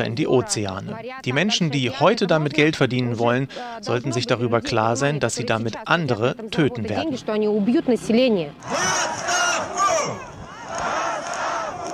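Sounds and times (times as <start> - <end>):
speech: 0.0 - 10.3
large protest crowd shouting and chanting: 8.5 - 11.9.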